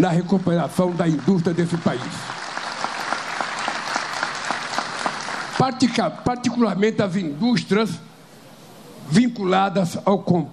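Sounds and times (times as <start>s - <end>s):
speech: 0.0s - 2.4s, 5.6s - 8.1s, 9.1s - 10.5s
audience applause: 0.0s - 6.0s.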